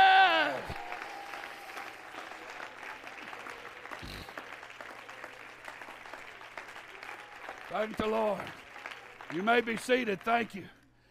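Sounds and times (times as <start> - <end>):
crowd shouts: 0.0 - 2.3
audience clapping: 0.0 - 10.9
speech: 7.7 - 8.6, 9.3 - 10.8.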